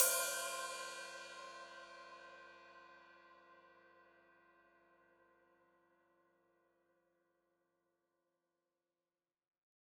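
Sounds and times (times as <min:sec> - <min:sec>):
open hi-hat: 0:00.0 - 0:01.6.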